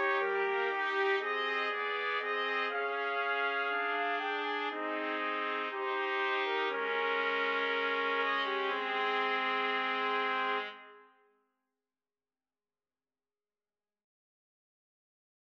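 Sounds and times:
romance trumpet trio: 0.0s - 10.9s.

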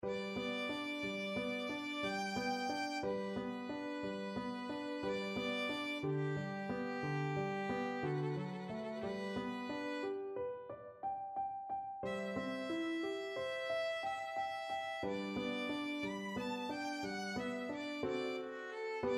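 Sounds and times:
violin sonatina: 0.0s - 10.6s, 12.0s - 19.1s.

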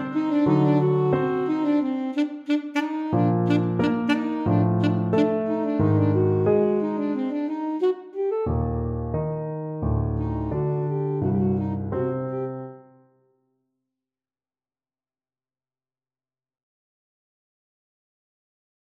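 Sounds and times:
Romanian folk dance on alto saxophone: 0.0s - 9.4s, 10.0s - 13.0s.

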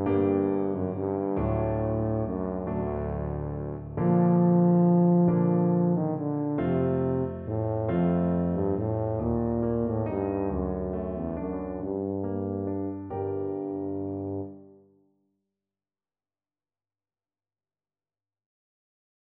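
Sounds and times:
tuba playing a folk tune: 0.0s - 14.6s.

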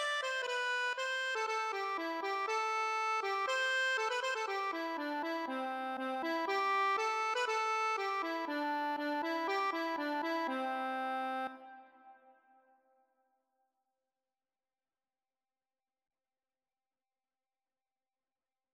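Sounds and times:
accordion: 0.0s - 12.2s.

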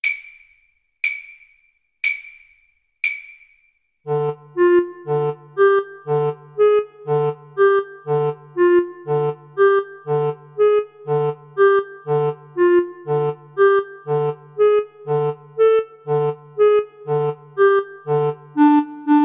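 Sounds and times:
clarinet duet: 4.1s - 19.2s.

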